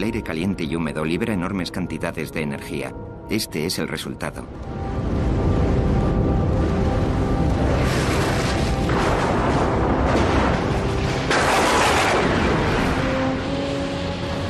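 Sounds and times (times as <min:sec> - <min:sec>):
speech: 0:00.0 - 0:05.2
thunder rumbling at night: 0:04.7 - 0:14.4.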